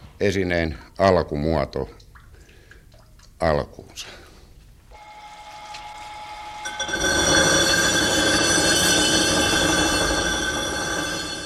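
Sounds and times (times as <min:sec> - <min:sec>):
speech: 0:00.2 - 0:02.0, 0:03.4 - 0:04.2
rough grinding of a stone sculpture: 0:06.6 - 0:11.4.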